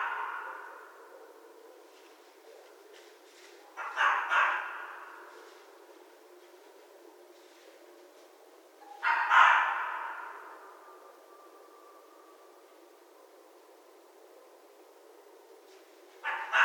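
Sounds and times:
red fox barking: 0.0 - 5.6, 9.0 - 12.1, 16.2 - 16.6.

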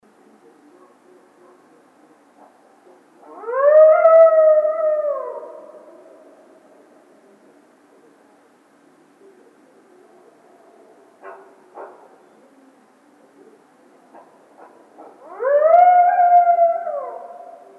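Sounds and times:
coyote howling: 3.2 - 7.0, 15.0 - 17.7.

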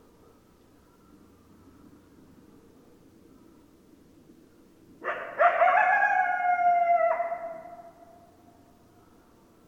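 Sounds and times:
several coyotes howling: 5.0 - 8.4.

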